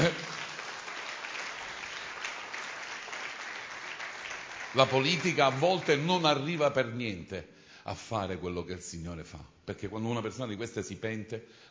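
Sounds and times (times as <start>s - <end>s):
audience applause: 0.0s - 6.5s
speech: 4.7s - 11.6s.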